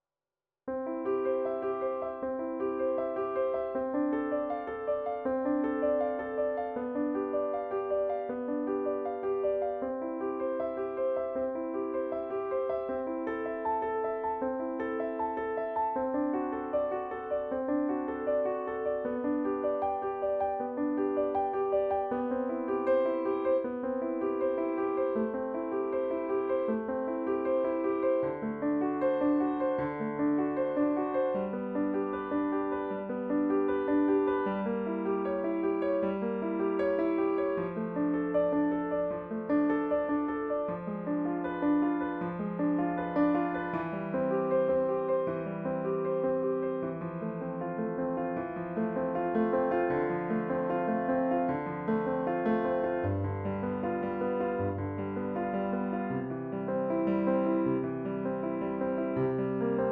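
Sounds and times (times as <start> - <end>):
classical prelude in C major: 0.7 - 59.8.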